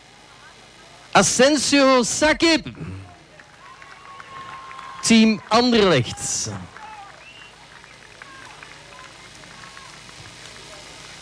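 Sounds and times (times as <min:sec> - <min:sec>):
faint crowd voices: 0:00.0 - 0:11.2
speech: 0:01.2 - 0:02.9, 0:05.1 - 0:06.8
audience applause: 0:02.4 - 0:11.2.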